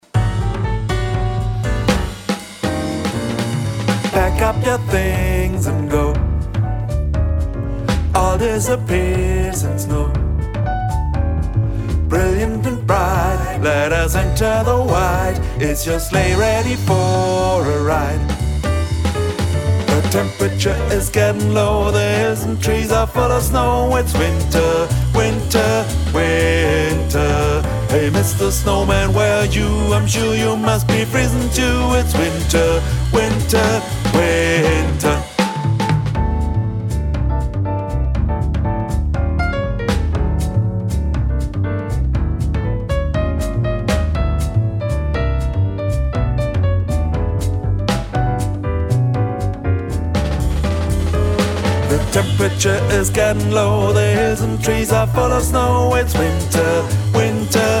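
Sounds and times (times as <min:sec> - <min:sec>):
bass: 0:00.0 - 0:57.7.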